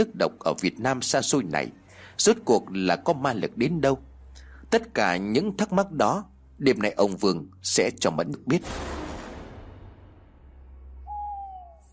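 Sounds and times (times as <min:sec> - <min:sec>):
speech: 0:00.0 - 0:04.1, 0:04.7 - 0:09.0
owl hooting at night: 0:11.0 - 0:11.9.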